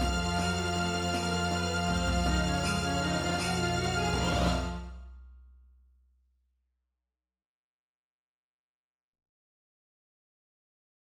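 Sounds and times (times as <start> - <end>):
MIDI battle music: 0.0 - 5.1.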